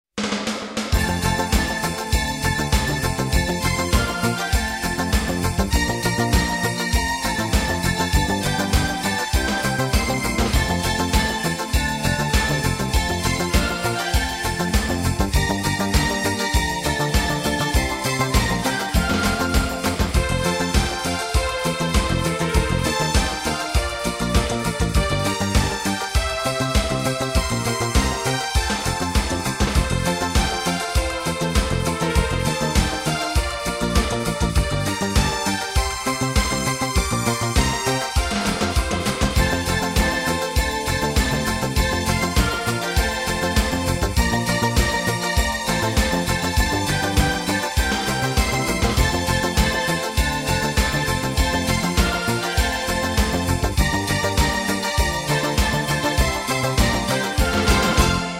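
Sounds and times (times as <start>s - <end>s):
Christmas song: 0.9s - 58.3s.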